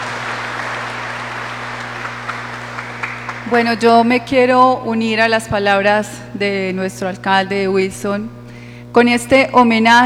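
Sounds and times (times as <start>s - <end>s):
applause: 0.0s - 4.0s
speech: 3.5s - 8.4s, 9.0s - 10.0s.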